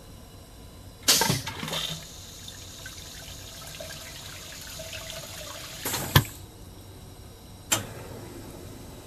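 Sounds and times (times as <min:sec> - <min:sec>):
train car doors: 0:01.1 - 0:02.0, 0:07.7 - 0:08.9
train car sink: 0:01.1 - 0:06.5
train car toilet flush: 0:01.1 - 0:06.5.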